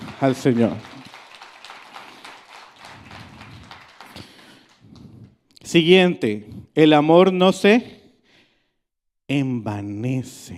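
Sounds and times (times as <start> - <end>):
audience applauding: 0.0 - 5.4
speech: 0.2 - 0.9, 5.7 - 8.0, 9.3 - 10.5.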